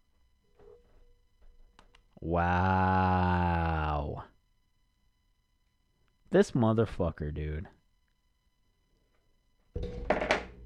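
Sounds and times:
speech: 0:02.2 - 0:03.4, 0:06.3 - 0:07.8
phone being dropped: 0:09.8 - 0:10.6.

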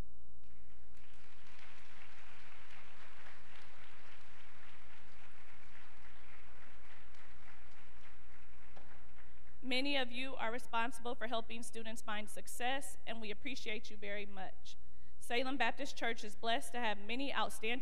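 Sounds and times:
faint low hum: 0:00.0 - 0:17.7
audience applause: 0:00.7 - 0:09.6
speech: 0:09.7 - 0:17.7.

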